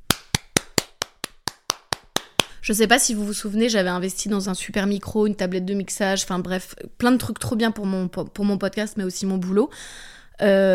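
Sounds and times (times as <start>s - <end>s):
one person clapping their own hands: 0.0s - 2.6s
speech: 2.7s - 10.7s.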